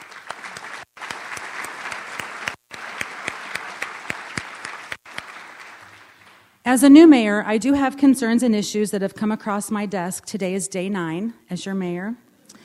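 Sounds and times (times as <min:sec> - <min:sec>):
audience applause: 0:00.0 - 0:06.6
speech: 0:06.6 - 0:12.2.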